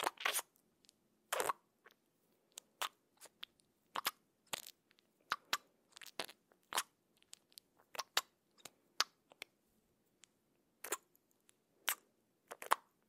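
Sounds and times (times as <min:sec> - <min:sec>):
wet cheek smacking: 0:00.0 - 0:00.5, 0:01.3 - 0:01.6, 0:02.5 - 0:09.5, 0:10.8 - 0:11.1, 0:11.8 - 0:12.9.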